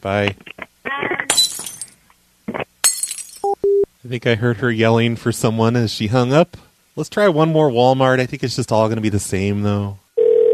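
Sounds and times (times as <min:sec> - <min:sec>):
speech: 0:00.0 - 0:00.5, 0:04.1 - 0:10.0
glass candle jars smashed on floor: 0:01.3 - 0:02.0, 0:02.8 - 0:03.5.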